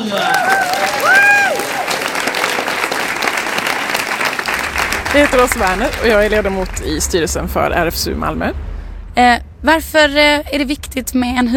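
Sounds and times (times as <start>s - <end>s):
audience applause: 0.0s - 7.1s
speech: 5.2s - 11.5s.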